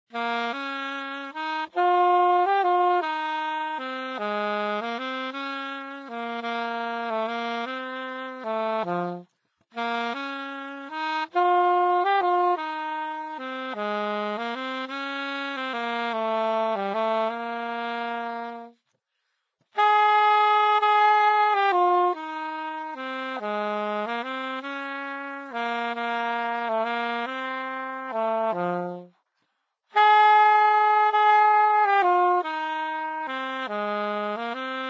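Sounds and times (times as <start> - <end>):
saxophone: 0.0 - 34.8.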